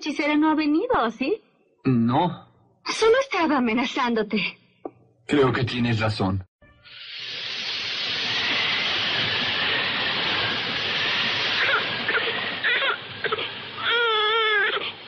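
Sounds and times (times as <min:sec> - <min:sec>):
speech: 0:00.0 - 0:04.6, 0:05.3 - 0:06.5
steady loud hiss: 0:06.9 - 0:15.0
week-old baby girl crying: 0:11.6 - 0:15.0.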